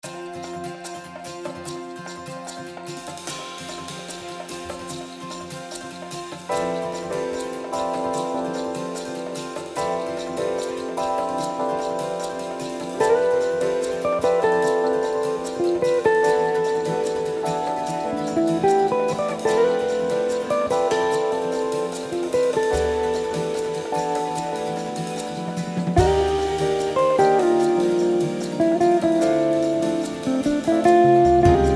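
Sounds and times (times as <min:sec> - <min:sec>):
bossa nova music: 0:00.0 - 0:31.7.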